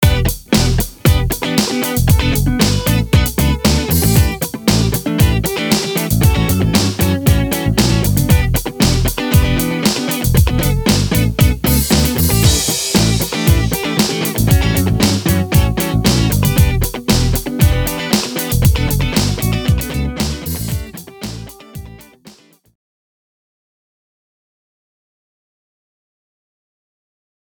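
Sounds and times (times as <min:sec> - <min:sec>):
bass: 0:00.0 - 0:01.4, 0:02.0 - 0:13.8, 0:14.4 - 0:22.1.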